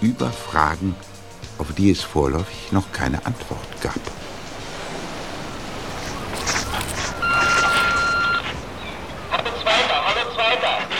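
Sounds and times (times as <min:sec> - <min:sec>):
speech: 0:00.0 - 0:04.2
noisy rustling bursts: 0:02.9 - 0:09.9
radio transceiver electronic call tone for an incoming call: 0:07.0 - 0:08.5.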